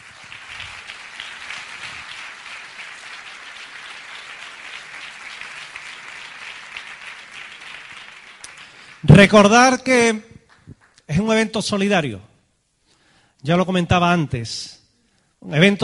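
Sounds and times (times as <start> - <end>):
audience applause: 0.0 - 9.1
speech: 9.1 - 10.3, 11.2 - 12.3, 13.4 - 14.8, 15.4 - 15.8.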